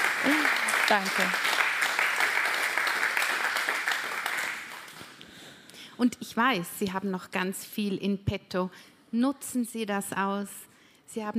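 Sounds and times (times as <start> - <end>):
audience applause: 0.0 - 5.2
speech: 0.2 - 1.5, 6.0 - 11.3.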